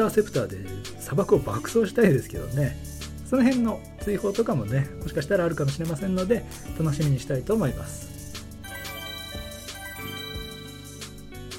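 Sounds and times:
speech: 0:00.0 - 0:08.1
electronic email notification chime: 0:08.6 - 0:11.5.

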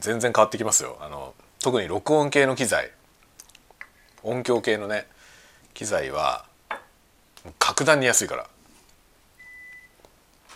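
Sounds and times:
speech: 0:00.0 - 0:03.0, 0:04.2 - 0:05.1, 0:05.8 - 0:06.5, 0:07.4 - 0:08.5
low hiss: 0:00.0 - 0:10.5
washing machine end-of-cycle beep: 0:09.4 - 0:10.5.

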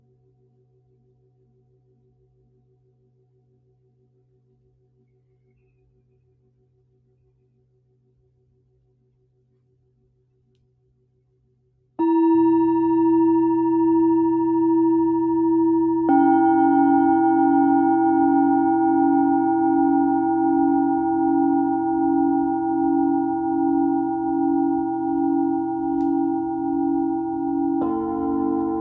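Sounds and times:
singing bowls for sound healing: 0:12.0 - 0:28.8.

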